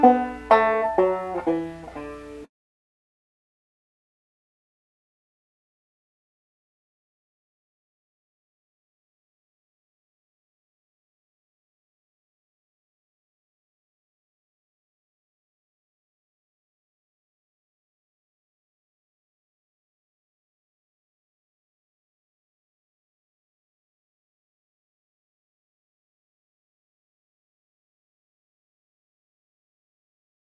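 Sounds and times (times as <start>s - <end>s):
banjo playing a folk tune: 0.0s - 2.5s.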